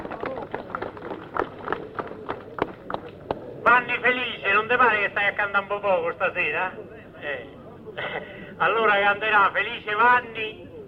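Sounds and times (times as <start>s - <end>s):
audience applause: 0.0s - 3.4s
speech: 3.7s - 10.6s.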